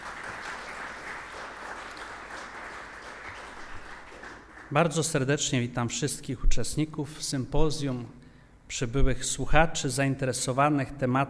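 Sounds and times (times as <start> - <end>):
audience applause: 0.0 - 4.7
speech: 4.7 - 11.2.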